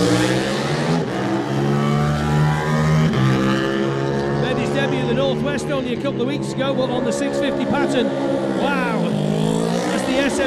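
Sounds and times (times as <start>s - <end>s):
Yamaha 700 sport motorcycle accelerating away in a road race: 0.0s - 10.4s
speech: 5.5s - 9.2s.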